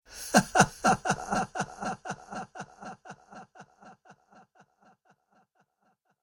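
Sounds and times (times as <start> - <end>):
laughing with delay effect: 0.2 - 4.4.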